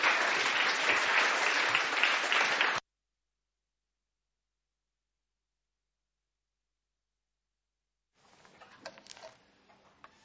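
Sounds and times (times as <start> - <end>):
audience applause: 0.0 - 2.8.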